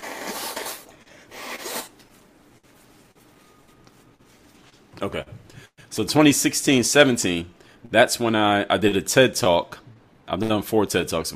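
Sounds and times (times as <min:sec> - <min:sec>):
person blowing their nose: 0:00.0 - 0:02.0
speech: 0:05.0 - 0:11.3.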